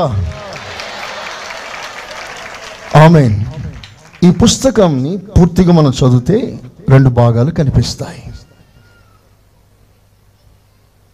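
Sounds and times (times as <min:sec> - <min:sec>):
speech: 0:00.0 - 0:00.4, 0:02.9 - 0:03.6, 0:04.2 - 0:08.3
congregation clapping hands while giving praise in worship: 0:00.0 - 0:05.6.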